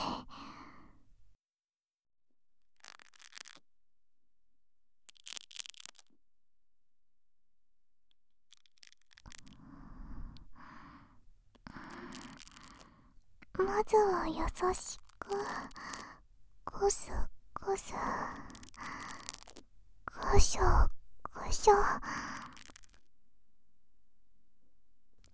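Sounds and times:
ASMR breathing into the listener's ear: 0:00.0 - 0:01.0, 0:09.4 - 0:22.8
speech: 0:13.9 - 0:15.8, 0:16.8 - 0:18.7, 0:20.3 - 0:22.3.

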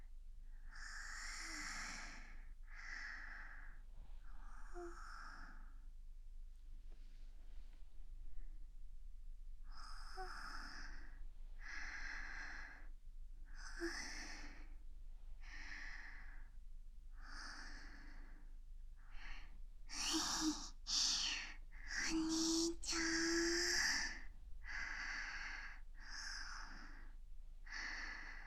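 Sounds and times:
sleeping breath: 0:00.7 - 0:05.8, 0:09.6 - 0:12.9, 0:13.5 - 0:14.8, 0:15.4 - 0:28.4
sleep talking: 0:19.9 - 0:25.5.

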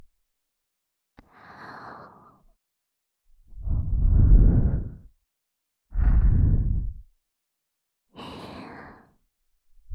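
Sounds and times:
ASMR breathy blowing close to the left ear: 0:03.6 - 0:05.1, 0:05.9 - 0:07.0.

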